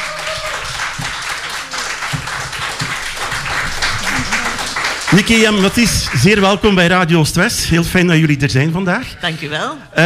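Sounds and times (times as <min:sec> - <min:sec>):
audience applause: 0:00.0 - 0:07.1
speech: 0:05.1 - 0:10.0.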